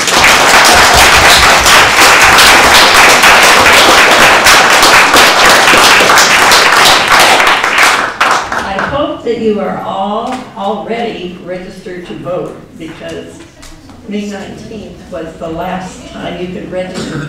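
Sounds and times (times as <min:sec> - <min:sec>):
audience clapping: 0:00.0 - 0:08.9
speech: 0:09.4 - 0:13.4, 0:14.1 - 0:17.2.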